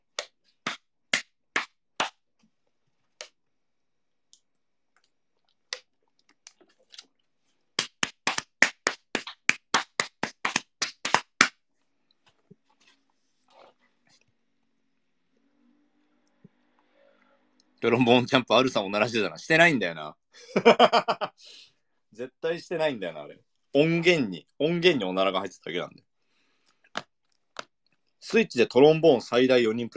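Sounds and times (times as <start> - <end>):
hands slapping thighs: 0.1 - 2.3, 7.8 - 11.6, 26.9 - 27.8
speech: 17.8 - 26.1, 28.2 - 29.9.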